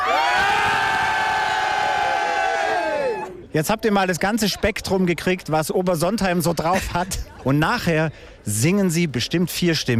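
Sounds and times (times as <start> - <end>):
crowd shouting loudly: 0.0 - 3.5
speech: 3.6 - 9.9.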